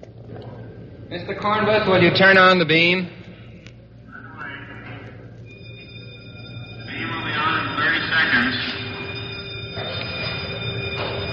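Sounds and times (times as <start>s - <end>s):
speech: 0.4s - 3.2s
cyclotron warning bell ringing: 5.5s - 11.3s.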